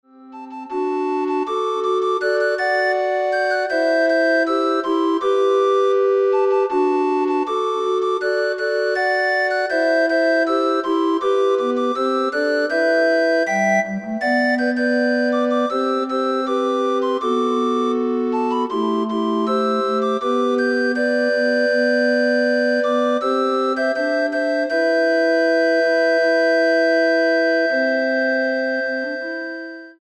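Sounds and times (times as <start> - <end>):
recorder ensemble: 0.3 - 29.9.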